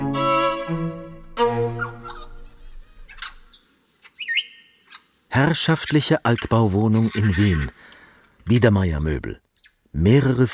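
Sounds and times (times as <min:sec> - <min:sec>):
parrots squawking in cages: 0:01.7 - 0:05.2, 0:06.4 - 0:07.7
speech: 0:05.4 - 0:10.5.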